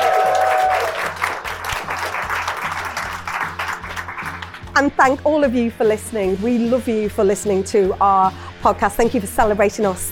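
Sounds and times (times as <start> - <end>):
live audience applause: 0.0 - 4.7
speech: 4.8 - 10.1.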